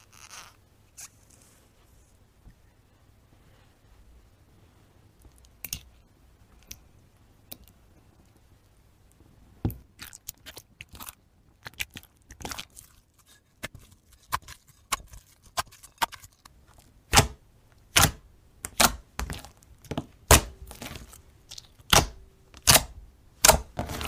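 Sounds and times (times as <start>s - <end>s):
slime being squished and pressed: 9.9s - 24.0s.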